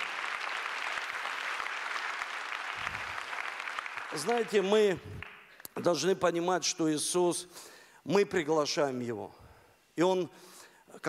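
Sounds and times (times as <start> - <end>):
audience applause: 0.0 - 5.5
speech: 4.1 - 9.4, 10.0 - 11.0.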